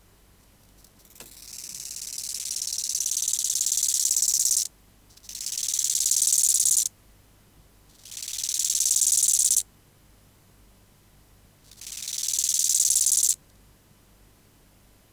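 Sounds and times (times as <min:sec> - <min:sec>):
bow-winged grasshopper Chorthippus biguttulus stridulating: 0:01.0 - 0:06.9, 0:08.0 - 0:09.6, 0:11.7 - 0:13.4.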